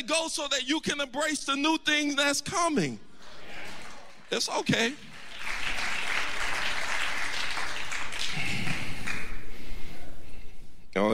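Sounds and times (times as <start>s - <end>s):
speech: 0.1s - 3.1s, 4.3s - 5.1s, 10.9s - 11.1s
weak audience clapping: 3.2s - 9.8s.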